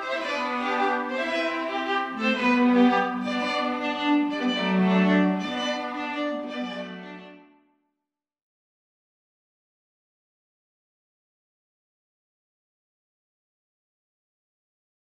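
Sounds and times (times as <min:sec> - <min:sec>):
string quartet playing a wedding march: 0:00.0 - 0:07.6.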